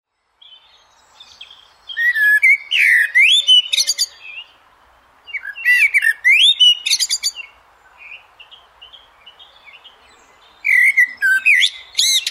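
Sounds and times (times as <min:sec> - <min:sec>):
Eurasian blackbird singing: 0:00.4 - 0:04.6, 0:05.3 - 0:12.3.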